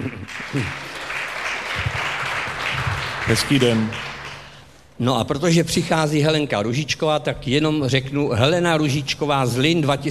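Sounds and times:
festival audience applause: 0.0 - 4.6
speech: 0.5 - 0.8, 3.3 - 4.0, 5.0 - 10.0.

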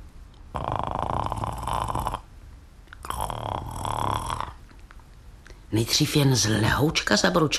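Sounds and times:
voice imitating gurgling snore: 0.5 - 2.3, 3.0 - 4.6
speech: 5.7 - 7.5.

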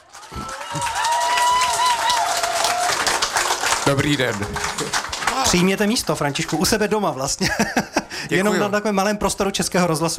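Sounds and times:
audience applause: 0.0 - 7.2
speech: 3.9 - 10.1
laughter: 7.3 - 8.6.

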